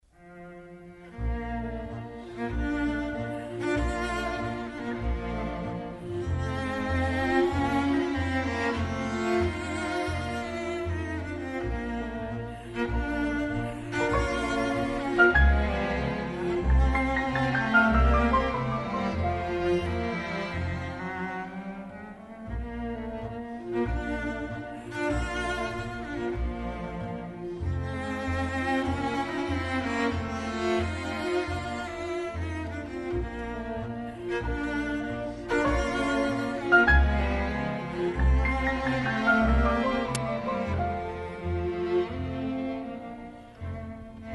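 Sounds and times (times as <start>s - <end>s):
piano quintet in A major: 1.0s - 22.6s, 23.2s - 44.2s.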